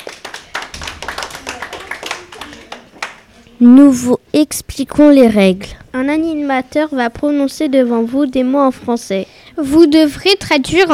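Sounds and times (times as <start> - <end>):
audience applauding: 0.0 - 3.3
speech: 3.6 - 10.9.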